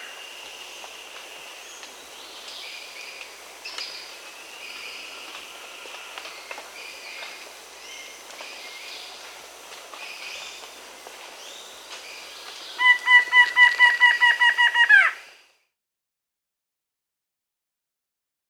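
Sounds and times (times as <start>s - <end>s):
Plain-winged Antshrike Thamnophilus schistaceus calling in Peru: 12.8s - 15.2s.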